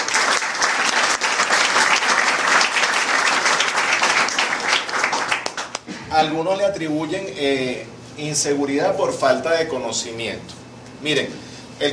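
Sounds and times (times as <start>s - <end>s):
audience applause: 0.0s - 5.8s
speech: 6.2s - 11.9s.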